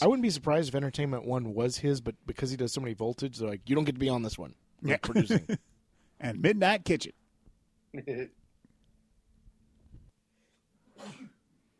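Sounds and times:
speech: 0.0s - 7.2s, 7.9s - 8.4s
sneeze: 10.9s - 11.4s
cough-like vocal burst: 11.0s - 11.4s.

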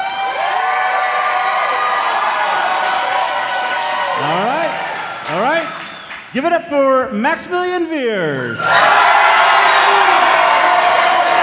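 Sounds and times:
crowd applause: 0.0s - 6.4s, 8.6s - 11.4s
shrill whoops and whistles: 5.7s - 6.3s, 8.4s - 10.2s
speech: 6.3s - 9.0s.

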